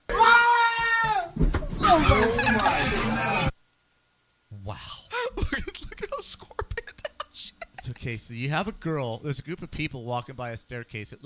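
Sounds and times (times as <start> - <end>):
scream in a played video: 0.1 - 3.5
speech: 1.9 - 2.9, 8.0 - 11.2
laughter: 1.9 - 3.5, 5.2 - 8.0.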